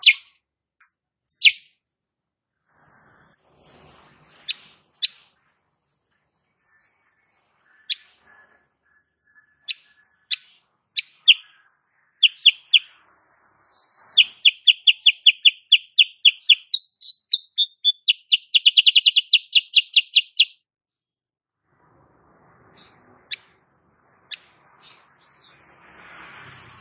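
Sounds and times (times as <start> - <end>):
sooty-headed bulbul singing: 0.0 - 0.3, 1.3 - 1.8, 9.0 - 13.0, 14.2 - 20.6.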